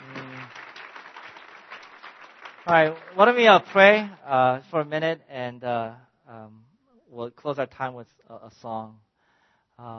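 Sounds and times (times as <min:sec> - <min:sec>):
audience applause at a church service for testimonies: 0:00.0 - 0:04.1
speech: 0:02.6 - 0:09.0, 0:09.8 - 0:09.9.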